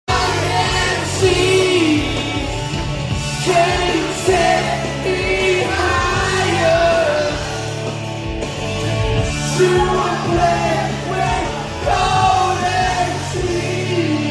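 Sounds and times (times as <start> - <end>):
karaoke singing: 0.1 - 14.2.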